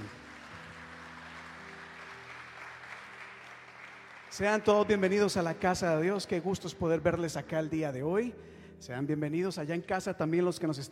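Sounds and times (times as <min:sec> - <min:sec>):
audience applause: 0:00.0 - 0:04.9
speech: 0:04.4 - 0:10.9.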